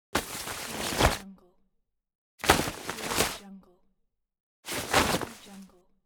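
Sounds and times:
raincoat rustling: 0:00.2 - 0:01.2, 0:02.4 - 0:03.4, 0:04.7 - 0:05.7.

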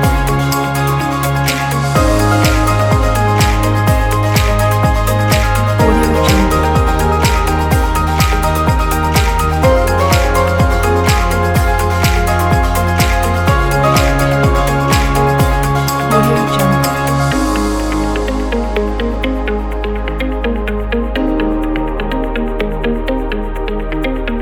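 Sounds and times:
happy corporate music: 0:00.0 - 0:24.4.

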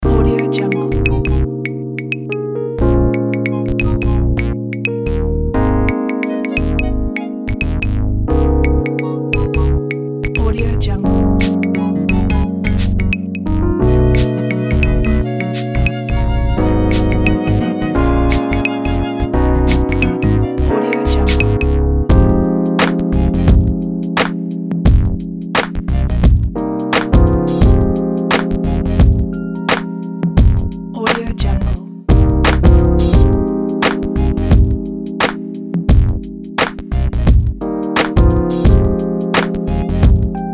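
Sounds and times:
neo soul music: 0:00.0 - 0:40.5.

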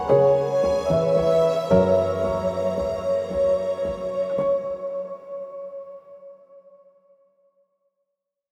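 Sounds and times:
cinematic fantasy music: 0:00.0 - 0:06.0.

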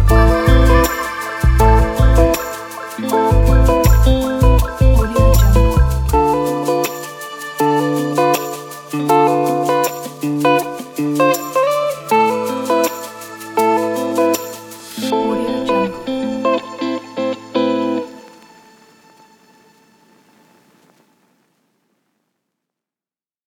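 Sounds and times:
romantic hip hop electric guitar: 0:00.0 - 0:18.5.

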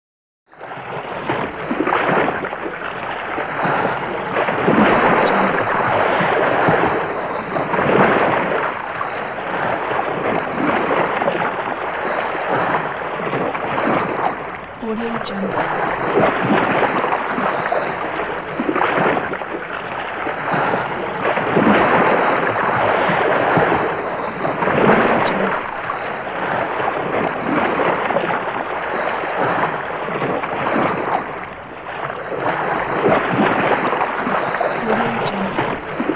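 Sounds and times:
large water slurps and laps: 0:00.8 - 0:36.1.

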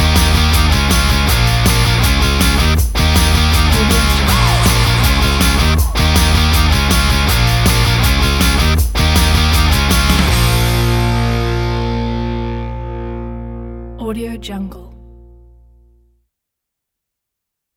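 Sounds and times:
upbeat happy indie music: 0:00.0 - 0:13.6.

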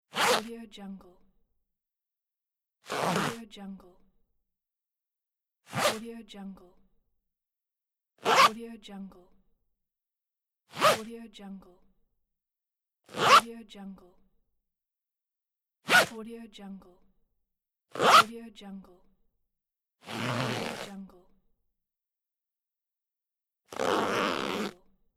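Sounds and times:
trouser zip: 0:00.1 - 0:00.5, 0:02.8 - 0:03.4, 0:05.7 - 0:06.0, 0:08.2 - 0:08.6, 0:10.7 - 0:11.1, 0:13.1 - 0:13.5, 0:15.9 - 0:16.1, 0:17.9 - 0:18.3, 0:20.0 - 0:21.0, 0:23.7 - 0:24.9.

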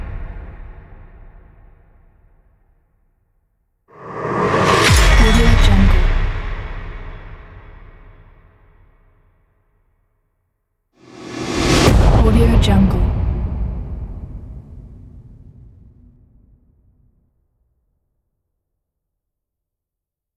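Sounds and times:
epic cinematic rise: 0:03.9 - 0:07.7, 0:11.1 - 0:16.2.

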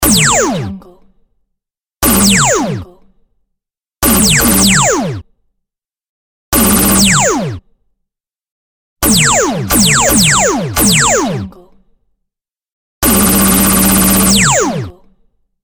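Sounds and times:
laser shot: 0:00.0 - 0:00.7, 0:02.0 - 0:02.8, 0:04.0 - 0:05.2, 0:06.6 - 0:07.6, 0:09.0 - 0:11.5, 0:13.0 - 0:14.9.

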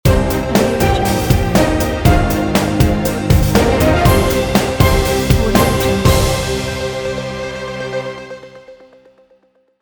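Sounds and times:
breaking news intro logo jingle: 0:00.5 - 0:07.8.

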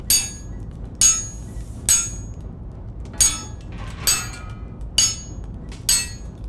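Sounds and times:
blacksmith workspace ambience: 0:00.1 - 0:02.4, 0:03.2 - 0:06.3.

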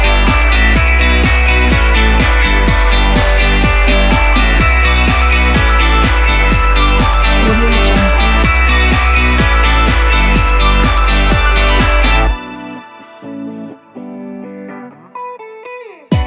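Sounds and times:
upbeat summer electro pop: 0:00.0 - 0:12.5.

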